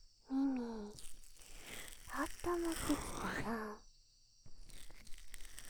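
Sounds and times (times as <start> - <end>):
ear massage sounds: 0.3 - 3.8.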